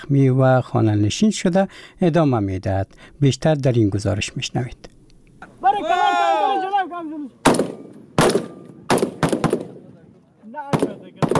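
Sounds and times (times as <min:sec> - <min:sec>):
speech: 0:00.0 - 0:05.0
person shouting: 0:05.6 - 0:07.3
gunfire during commando training in Herat: 0:07.4 - 0:10.0, 0:10.7 - 0:11.3.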